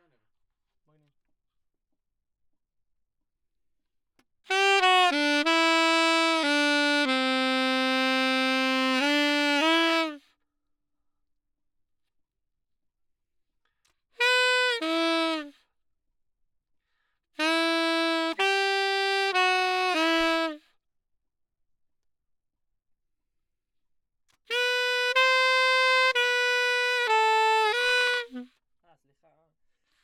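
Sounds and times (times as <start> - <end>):
saxophone: 4.5 - 10.3, 14.2 - 15.6, 17.4 - 20.7, 24.4 - 28.6.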